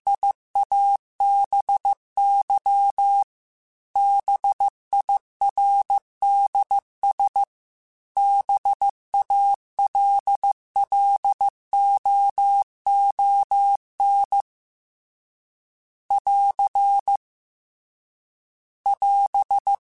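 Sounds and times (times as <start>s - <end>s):
Morse code CW code groups: 0.1s - 3.3s, 4.0s - 7.5s, 8.2s - 14.5s, 16.1s - 17.2s, 18.9s - 19.8s.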